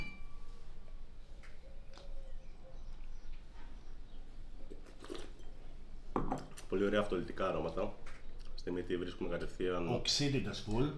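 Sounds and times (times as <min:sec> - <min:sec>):
wine glasses clinking in a toast: 0:00.0 - 0:00.5
speech: 0:06.7 - 0:10.9.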